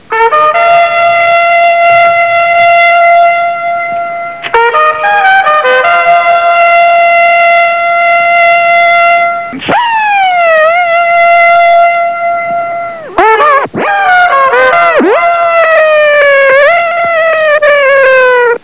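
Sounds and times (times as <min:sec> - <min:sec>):
fanfare: 0:00.1 - 0:18.6.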